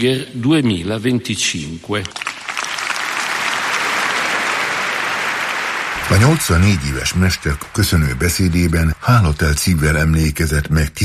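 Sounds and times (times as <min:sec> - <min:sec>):
speech: 0:00.0 - 0:02.3, 0:06.1 - 0:11.0
large audience applause: 0:02.1 - 0:10.4.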